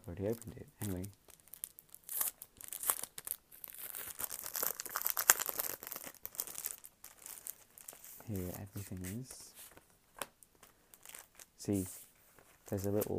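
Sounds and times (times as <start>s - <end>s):
speech: 0.1s - 1.3s, 8.3s - 9.5s, 11.7s - 12.0s, 12.7s - 13.1s
package wrapping crinkling and tearing as it is opened for ASMR: 0.1s - 13.1s.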